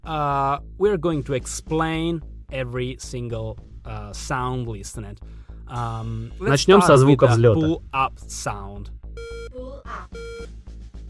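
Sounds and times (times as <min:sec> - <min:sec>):
speech: 0:00.1 - 0:09.3
flight simulator crash warning beep: 0:09.2 - 0:10.5.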